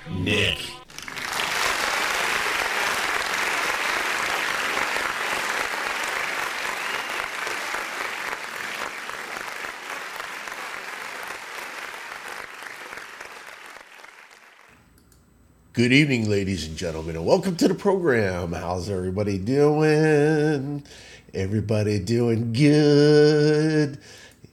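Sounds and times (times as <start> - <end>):
speech: 0.0 - 0.8, 15.8 - 24.2
studio audience clapping for a live show opening: 0.8 - 14.7.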